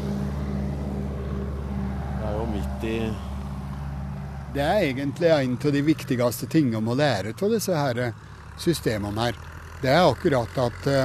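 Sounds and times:
tractor passing by: 0.0 - 11.0
speech: 2.7 - 3.3, 4.5 - 11.0.

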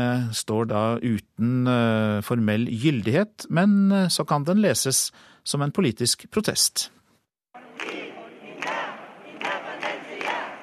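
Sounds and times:
speech: 0.0 - 7.0
large crowd singing: 7.6 - 10.6.

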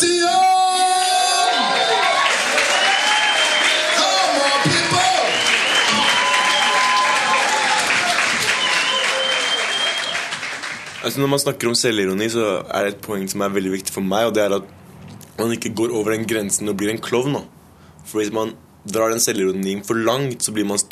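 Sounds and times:
audience applause: 0.4 - 11.2
speech: 11.1 - 14.8, 15.4 - 20.9.

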